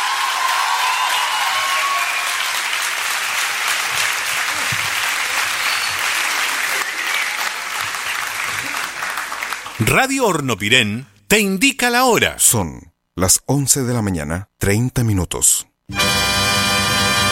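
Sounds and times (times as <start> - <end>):
audience applause: 0.0 - 9.9
speech: 9.8 - 17.2.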